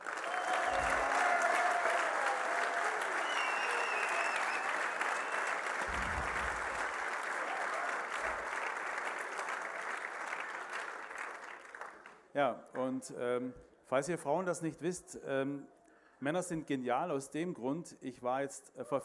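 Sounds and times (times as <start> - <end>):
applause from the men for the women: 0.0 - 12.2
speech: 12.4 - 19.0.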